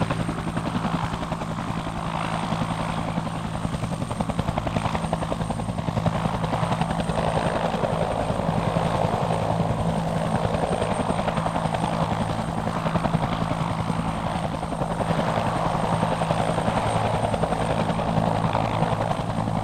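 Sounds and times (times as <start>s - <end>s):
Bell UH-1 Iroquois helicopter idling: 0.0s - 19.6s.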